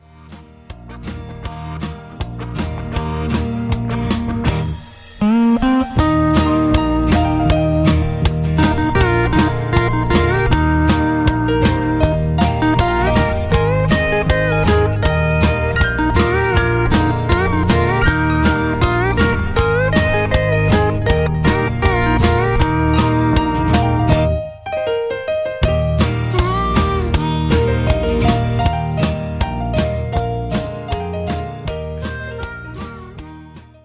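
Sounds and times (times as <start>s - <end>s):
instrumental two-step music: 0.0s - 33.8s.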